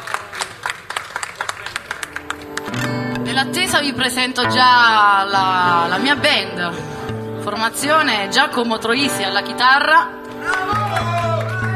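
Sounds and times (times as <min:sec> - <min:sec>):
audience applause: 0:00.0 - 0:02.8, 0:10.3 - 0:11.7
speech: 0:03.4 - 0:10.6.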